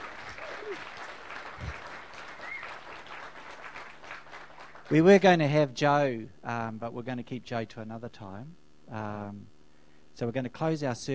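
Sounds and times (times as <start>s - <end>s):
audience applause: 0.0s - 5.1s
speech: 4.9s - 9.6s, 10.2s - 11.1s.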